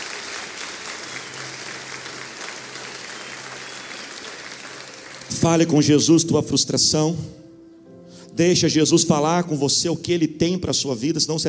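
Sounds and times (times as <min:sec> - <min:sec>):
crowd, audience applause: 0:00.0 - 0:05.8
speech: 0:05.3 - 0:07.4, 0:08.4 - 0:11.4.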